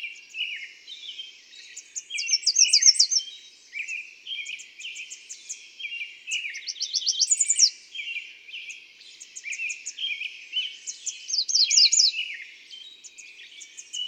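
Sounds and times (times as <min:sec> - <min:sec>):
American redstart singing: 0:00.0 - 0:14.0.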